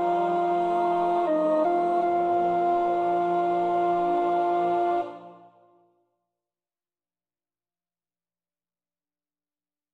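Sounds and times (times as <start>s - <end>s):
soprano singing: 0.0s - 5.4s.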